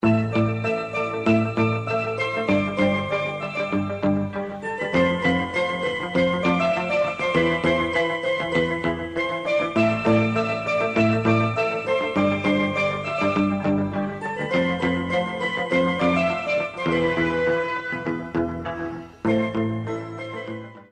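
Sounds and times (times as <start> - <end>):
yoga music: 0.0 - 20.9.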